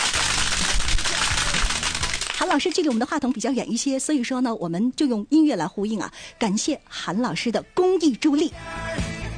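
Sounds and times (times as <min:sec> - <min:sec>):
applause: 0:00.0 - 0:03.4
speech: 0:02.4 - 0:09.1.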